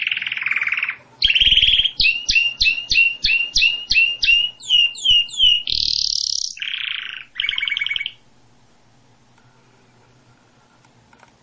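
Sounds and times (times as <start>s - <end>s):
canary song: 0.0s - 8.4s.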